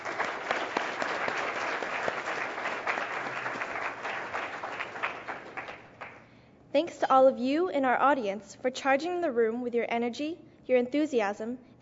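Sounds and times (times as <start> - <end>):
audience applause: 0.0 - 6.2
speech: 6.8 - 11.8.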